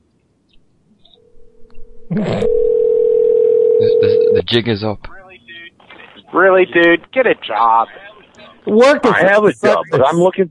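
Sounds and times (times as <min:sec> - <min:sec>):
faint hum: 0:00.0 - 0:10.5
speech: 0:02.1 - 0:02.7, 0:04.0 - 0:05.2, 0:06.4 - 0:10.5
telephone dial tone after disconnected call: 0:02.5 - 0:04.4.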